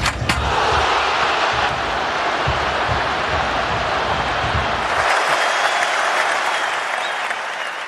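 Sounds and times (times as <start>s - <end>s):
stadium crowd roaring as Messi scores in last Argentina match: 0.2s - 7.8s.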